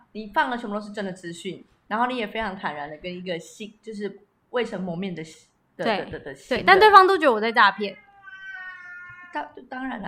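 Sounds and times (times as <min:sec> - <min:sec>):
speech: 0:00.1 - 0:08.0, 0:09.3 - 0:10.0
pet cat meowing: 0:07.7 - 0:09.6.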